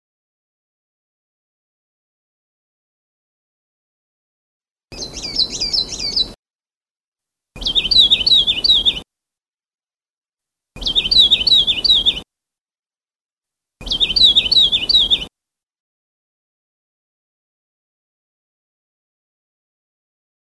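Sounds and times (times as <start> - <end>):
Sulawesi leaf warbler singing: 4.9 - 6.4, 7.6 - 9.0, 10.8 - 12.2, 13.8 - 15.3.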